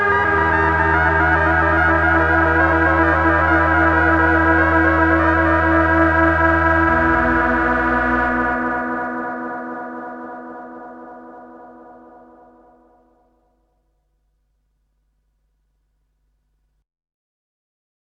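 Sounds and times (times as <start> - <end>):
Dreadbox Erebus reissue synthesizer: 0.0 - 13.4.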